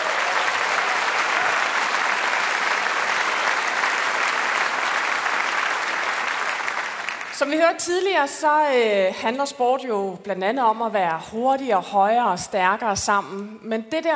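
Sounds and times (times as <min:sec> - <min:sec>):
audience applause: 0:00.0 - 0:07.4
speech: 0:07.4 - 0:14.1.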